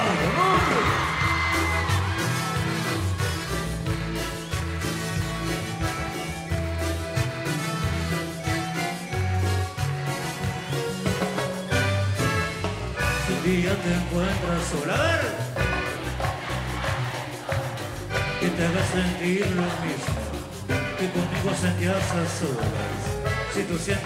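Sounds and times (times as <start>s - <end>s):
loud live music with heavy pulsing bass line: 0.0s - 24.0s
woman screaming in concert crowd: 0.3s - 2.4s
speech: 18.6s - 20.2s, 21.0s - 24.0s.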